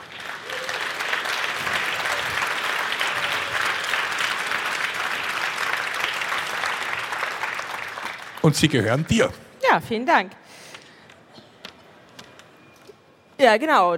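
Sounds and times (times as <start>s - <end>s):
audience applause: 0.0s - 9.3s
speech: 8.4s - 10.6s, 13.4s - 13.9s.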